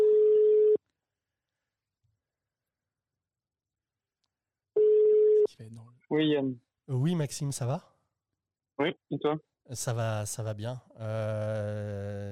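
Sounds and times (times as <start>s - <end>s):
telephone ringback tone: 0.0s - 0.8s, 4.8s - 5.4s
speech: 5.6s - 7.9s, 8.8s - 12.2s.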